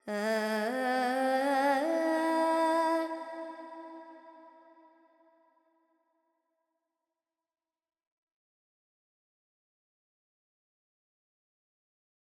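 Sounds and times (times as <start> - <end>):
Carnatic female alap in raga Panthuvarali: 0.0 - 4.0.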